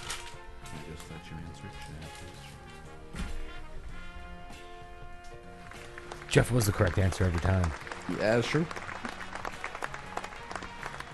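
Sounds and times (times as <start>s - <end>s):
applause sound effect: 5.6s - 11.1s
speech: 6.3s - 8.8s.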